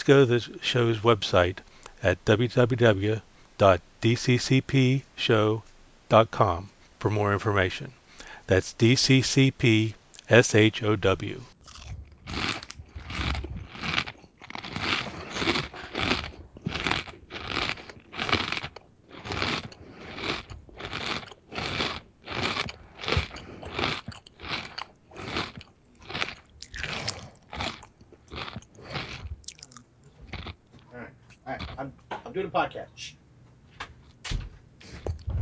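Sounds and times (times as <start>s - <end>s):
speech: 0.0s - 11.5s
potato chips being chewed: 11.2s - 31.9s.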